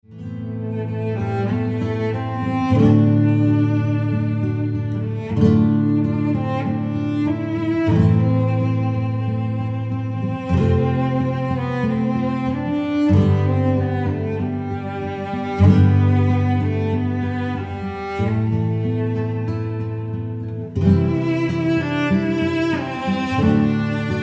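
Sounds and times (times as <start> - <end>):
flamenco Spanish guitar duo at a ceremony: 0.1 - 24.2.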